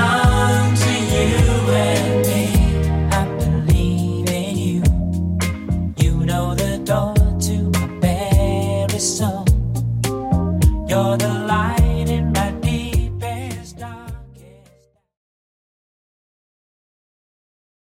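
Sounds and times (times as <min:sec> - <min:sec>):
1970s style beat: 0:00.0 - 0:14.2.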